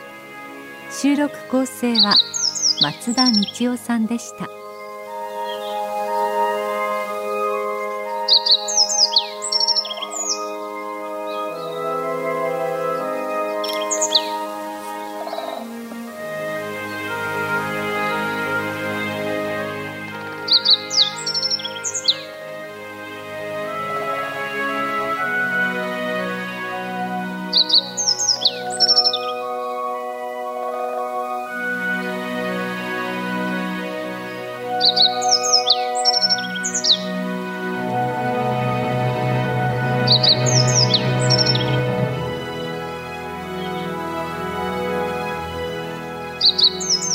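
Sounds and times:
melodic music bed: 0:00.0 - 0:47.1
speech: 0:00.9 - 0:04.6
yellow bunting and great spotted woodpecker calls: 0:01.9 - 0:15.9, 0:20.3 - 0:22.3, 0:27.5 - 0:29.9, 0:34.8 - 0:37.2, 0:40.0 - 0:42.4, 0:46.4 - 0:47.1.

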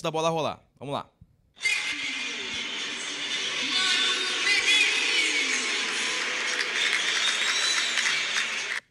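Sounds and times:
speech: 0:00.0 - 0:01.8
stadium crowd booing: 0:01.6 - 0:08.8
people clapping in stadium: 0:02.0 - 0:08.8.

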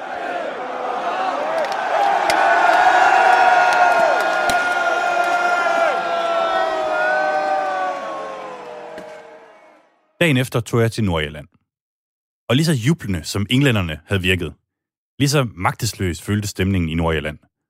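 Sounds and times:
cheering crowd at a public square: 0:00.0 - 0:10.2
speech: 0:10.2 - 0:11.5, 0:12.5 - 0:14.6, 0:15.2 - 0:17.5.

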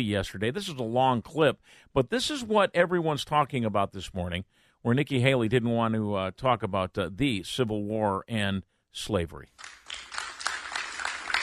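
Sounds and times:
speech: 0:00.0 - 0:09.7
light applause: 0:09.6 - 0:11.4.

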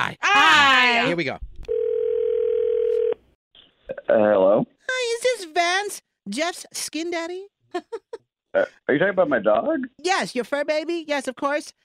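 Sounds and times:
speech: 0:00.0 - 0:01.5, 0:04.1 - 0:04.7, 0:05.6 - 0:11.8
phone call ringing tone: 0:01.7 - 0:03.2.

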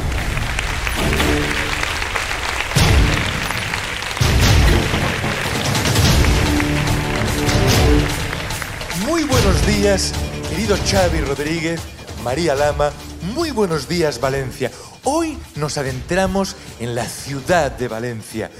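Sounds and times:
audience applause: 0:00.0 - 0:10.8
speech: 0:09.9 - 0:18.5.

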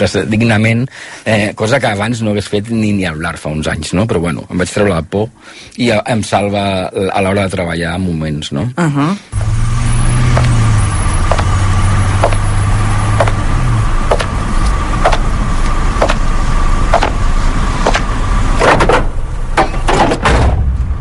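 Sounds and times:
speech: 0:00.0 - 0:09.7
immersive processed steady roar made with plugin: 0:09.3 - 0:20.9.

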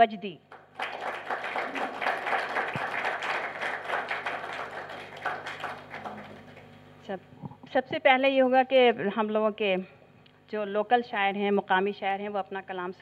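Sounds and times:
speech: 0:00.0 - 0:00.9, 0:07.1 - 0:12.9
audience clapping: 0:00.5 - 0:06.8.

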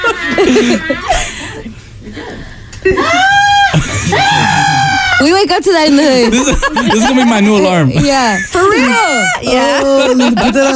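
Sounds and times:
laughter: 0:00.0 - 0:05.3, 0:06.0 - 0:10.7
speech: 0:00.3 - 0:01.3, 0:05.4 - 0:10.7
woman screaming while getting her tongue pierced: 0:02.9 - 0:05.4, 0:08.6 - 0:09.8.

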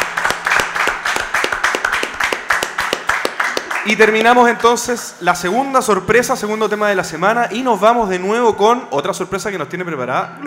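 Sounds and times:
audience applause: 0:00.0 - 0:04.5
speech: 0:03.9 - 0:10.4.

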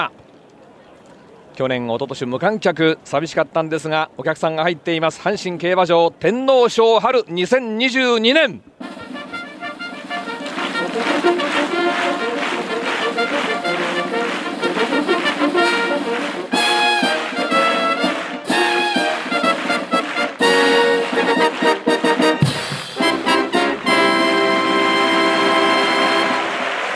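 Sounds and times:
speech: 0:00.0 - 0:00.2, 0:01.6 - 0:08.7
live military band horse race fanfare: 0:08.8 - 0:26.8.

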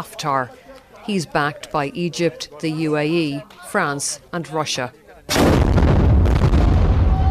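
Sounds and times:
speech: 0:00.0 - 0:05.6
gunfire on the Tripoli front line: 0:05.3 - 0:07.2.

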